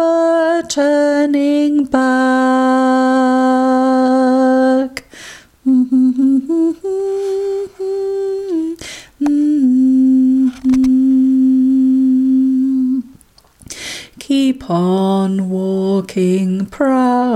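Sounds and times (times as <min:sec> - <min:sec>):
tenor female singing: 0:00.0 - 0:13.2, 0:14.2 - 0:17.3.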